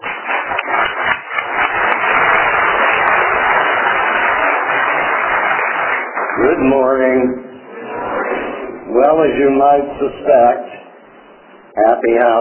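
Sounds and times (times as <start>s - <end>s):
audience applause: 0.0s - 8.3s
speech: 6.4s - 7.4s, 9.0s - 10.6s, 11.8s - 12.3s.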